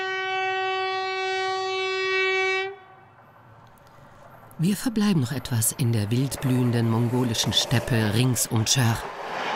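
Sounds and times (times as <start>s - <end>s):
train horn blast on the Trans-Mongolian railway: 0.0s - 3.1s
speech: 4.6s - 9.4s.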